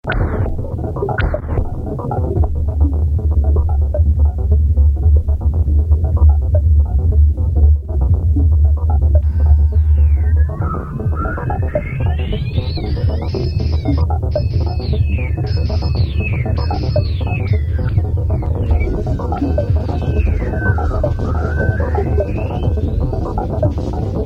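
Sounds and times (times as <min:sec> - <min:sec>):
drone: 0:00.1 - 0:24.2.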